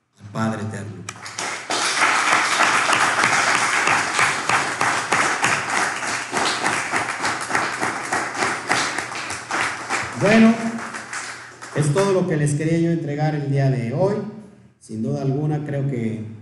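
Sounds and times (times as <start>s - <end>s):
speech: 0.4s - 1.0s, 10.2s - 10.6s, 11.8s - 16.3s
audience applause: 1.2s - 12.0s.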